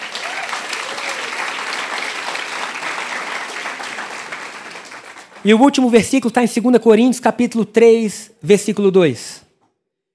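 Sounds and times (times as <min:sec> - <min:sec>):
audience applause: 0:00.0 - 0:06.0
speech: 0:05.4 - 0:09.4.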